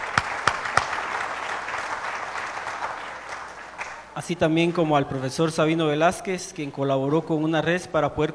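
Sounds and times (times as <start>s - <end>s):
audience applause: 0.0s - 4.4s
speech: 4.2s - 8.3s.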